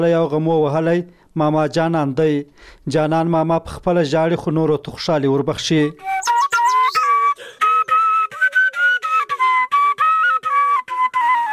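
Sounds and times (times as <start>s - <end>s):
speech: 0.0s - 6.2s
shepelai flute melody played by an elderly villager in Khwaja Omari district: 6.0s - 11.5s.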